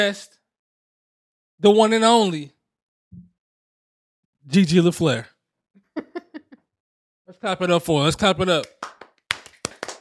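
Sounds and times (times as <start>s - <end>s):
speech: 0.0s - 0.4s, 1.6s - 3.2s, 4.5s - 5.3s, 7.3s - 8.8s
laughter: 5.9s - 6.6s
hand clapping: 8.5s - 9.9s.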